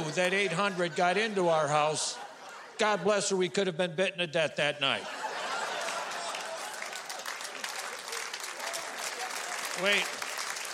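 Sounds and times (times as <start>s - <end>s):
laughter: 0.0s - 3.3s, 4.7s - 10.1s
speech: 0.1s - 5.2s, 9.8s - 10.2s
audience applause: 5.3s - 10.7s.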